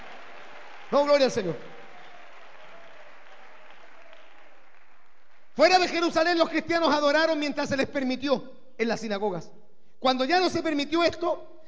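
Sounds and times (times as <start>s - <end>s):
audience applause: 0.0s - 6.0s
speech: 0.9s - 1.8s, 5.6s - 11.5s.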